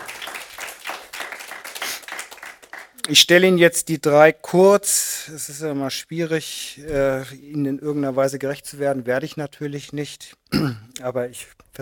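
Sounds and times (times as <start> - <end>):
audience applause welcoming three guests at a German-language evening event: 0.0 - 3.0
speech: 3.1 - 11.8.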